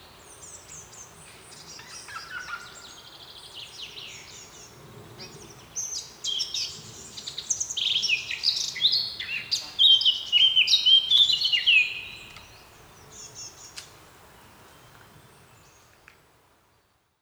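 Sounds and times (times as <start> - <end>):
Eurasian blackcap song: 7.4 - 14.0.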